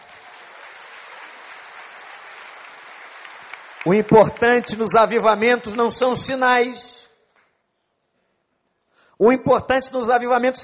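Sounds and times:
audience applause: 0.0s - 5.9s
speech: 3.8s - 7.0s, 9.2s - 10.6s.

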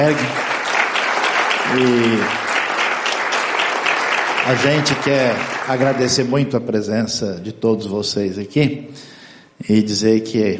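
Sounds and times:
speech: 0.0s - 0.5s, 1.7s - 2.4s, 4.4s - 10.5s
audience applause: 0.0s - 6.5s.

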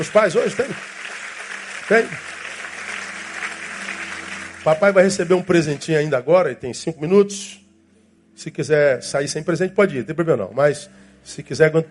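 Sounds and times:
speech: 0.0s - 1.1s, 1.9s - 2.3s, 4.6s - 7.6s, 8.4s - 11.8s
room full of people clapping: 0.0s - 6.1s.

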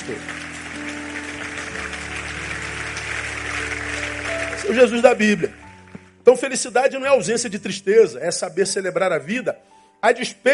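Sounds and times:
crowd applause: 0.0s - 5.9s
sustained low keyboard chords droning: 0.0s - 9.6s
speech: 0.1s - 0.9s, 4.6s - 5.6s, 6.3s - 10.5s.

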